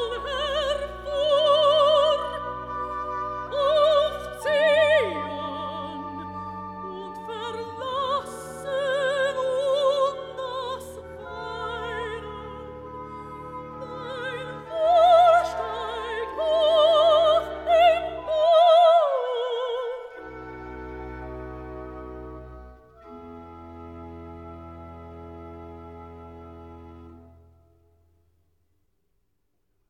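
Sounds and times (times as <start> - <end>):
recitative singing: 0.0 - 20.3.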